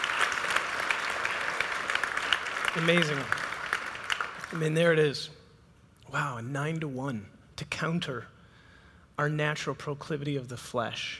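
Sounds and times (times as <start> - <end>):
audience applause: 0.0 - 4.6
speech: 2.8 - 3.4, 4.5 - 5.4, 6.1 - 8.3, 9.2 - 11.1.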